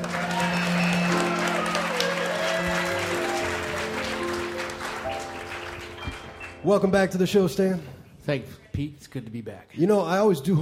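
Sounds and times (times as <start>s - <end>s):
live music show audience clapping: 0.0s - 6.7s
speech: 6.6s - 10.6s.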